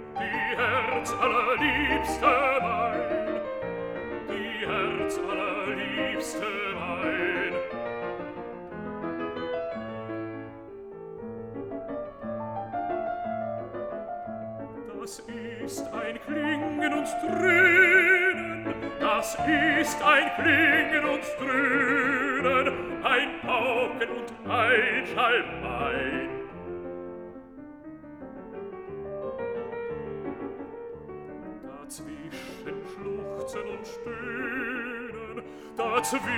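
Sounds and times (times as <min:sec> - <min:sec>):
piano: 0:00.0 - 0:36.3
person singing a song cycle: 0:00.1 - 0:03.4, 0:04.2 - 0:07.7, 0:14.9 - 0:26.4, 0:31.6 - 0:36.3.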